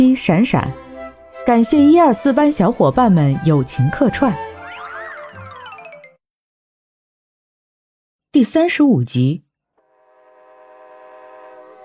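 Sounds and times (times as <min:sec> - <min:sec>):
speech: 0:00.0 - 0:00.8, 0:01.5 - 0:04.5, 0:08.4 - 0:09.4
train arriving at station: 0:09.9 - 0:11.8.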